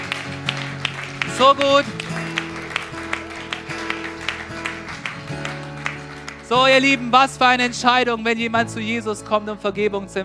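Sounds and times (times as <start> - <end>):
audience clapping: 0.0 - 8.1
keyboard chords: 0.0 - 10.2
speech: 1.4 - 2.0, 6.5 - 10.2.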